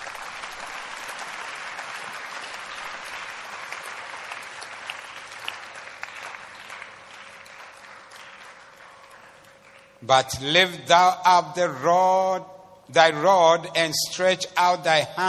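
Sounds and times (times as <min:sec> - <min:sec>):
audience clapping: 0:00.0 - 0:10.3
speech: 0:10.0 - 0:15.2.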